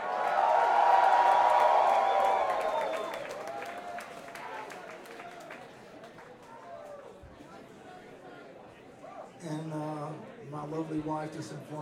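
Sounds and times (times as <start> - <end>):
crowd applause and cheering: 0.0 - 7.2
speech: 10.9 - 11.8.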